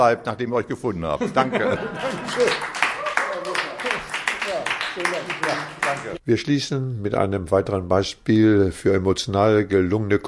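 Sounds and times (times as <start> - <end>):
speech: 0.0 - 2.8, 5.0 - 10.2
laughter: 1.2 - 3.8
audience applause: 2.0 - 6.2.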